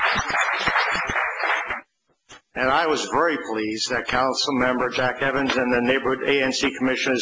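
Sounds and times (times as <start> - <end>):
applause at a transit board meeting: 0.0 - 1.9
speech: 0.1 - 1.1, 2.6 - 7.1.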